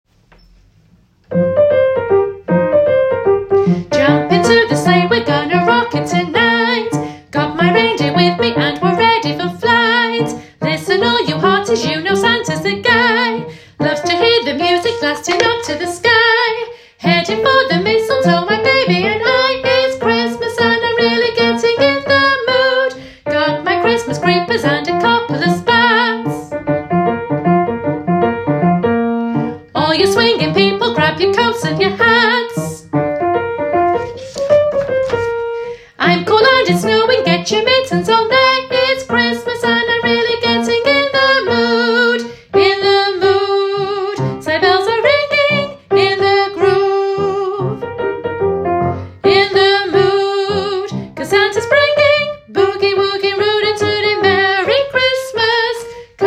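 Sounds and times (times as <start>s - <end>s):
alto Christmas music: 1.2s - 56.2s.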